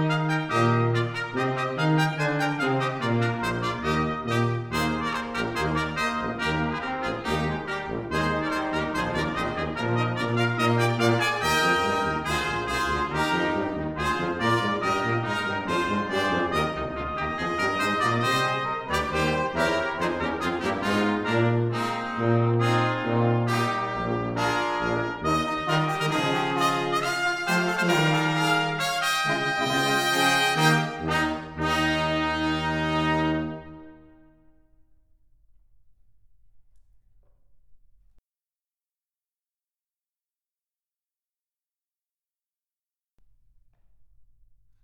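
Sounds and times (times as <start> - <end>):
brass ensemble playing: 0.0 - 34.7.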